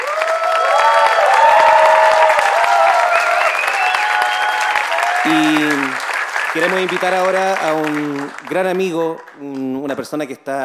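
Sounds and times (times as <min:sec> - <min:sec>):
shouts and whoops: 0:00.0 - 0:05.9
large audience applauding: 0:00.0 - 0:09.9
speech: 0:06.6 - 0:10.6.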